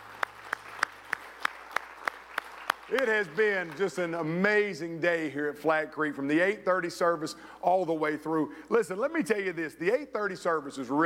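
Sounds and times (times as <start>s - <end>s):
audience applauding: 0.0s - 4.4s
speech: 2.9s - 11.0s.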